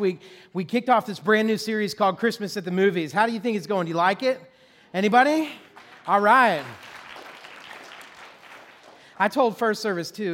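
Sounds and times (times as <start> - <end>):
speech: 0.0 - 6.9, 9.2 - 10.3
audience applause: 5.6 - 9.2.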